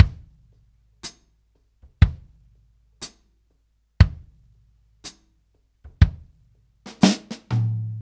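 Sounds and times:
70s ballad drum loop: 2.0 - 2.4, 4.0 - 4.4, 5.9 - 7.9.

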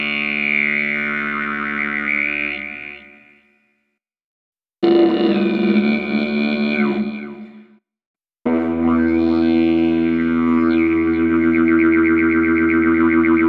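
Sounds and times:
didgeridoo: 0.0 - 3.3, 4.8 - 7.6, 8.5 - 13.4
overtone singing: 4.8 - 7.5, 8.5 - 13.4.

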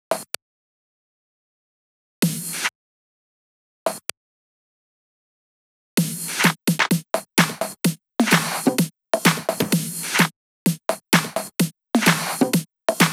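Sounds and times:
drum loop: 6.0 - 13.1
percussion: 6.0 - 13.1.

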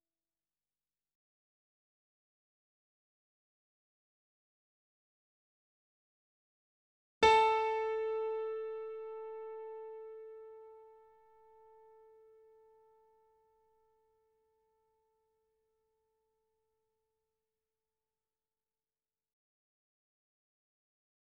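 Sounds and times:
C4 E4 A4 notes on grand piano and digital piano: 7.2 - 11.1.

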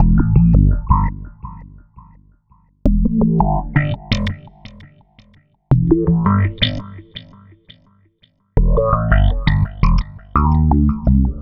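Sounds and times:
processed slap electric bass: 0.0 - 2.2, 2.9 - 4.9, 5.7 - 7.1, 8.6 - 11.4.

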